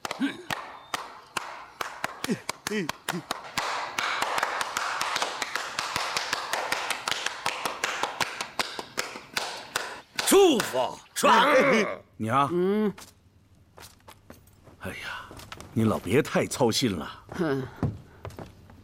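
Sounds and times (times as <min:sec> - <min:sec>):
hand clapping: 0:00.0 - 0:10.8
speech: 0:02.3 - 0:03.4, 0:10.3 - 0:13.2, 0:14.8 - 0:15.2, 0:15.8 - 0:17.9.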